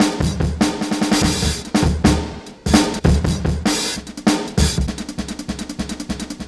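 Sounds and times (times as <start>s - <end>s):
breakbeat drums: 0.0s - 6.4s.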